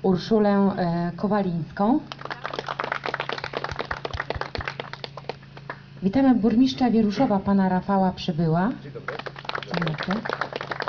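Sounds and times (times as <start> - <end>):
speech: 0.0 - 2.4, 6.0 - 10.5
audience clapping at a welcome ceremony for local officials: 2.1 - 5.8, 9.0 - 10.8.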